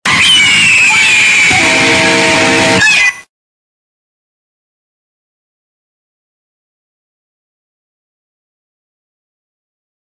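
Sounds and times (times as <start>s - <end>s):
earrape ending: 0.1s - 2.9s.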